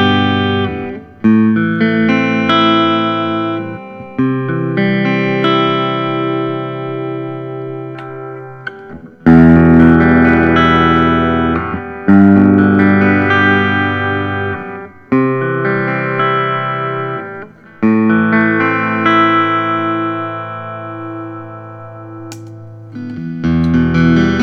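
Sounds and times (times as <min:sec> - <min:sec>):
PRS Private Stock electric guitar: 0:00.0 - 0:24.4.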